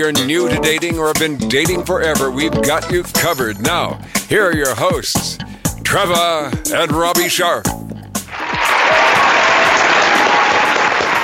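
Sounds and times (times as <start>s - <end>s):
speech: 0.0s - 7.9s
applause sound effect: 8.3s - 11.2s.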